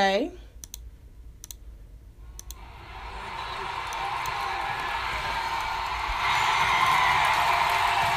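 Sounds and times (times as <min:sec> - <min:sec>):
speech: 0:00.0 - 0:00.4
cheering: 0:02.6 - 0:08.1
applause: 0:02.8 - 0:08.1.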